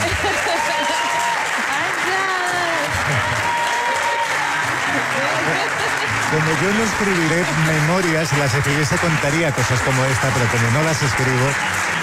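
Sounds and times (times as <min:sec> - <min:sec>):
laughter: 0:00.0 - 0:11.8
audience applause: 0:00.0 - 0:12.0
speech: 0:06.6 - 0:11.8.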